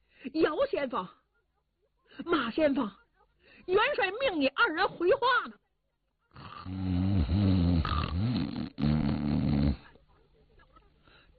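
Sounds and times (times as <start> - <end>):
speech: 0.3 - 1.2, 2.2 - 3.0, 3.6 - 5.6, 6.3 - 7.0
storyteller imitating the snoring of two sleeping men: 6.4 - 9.9.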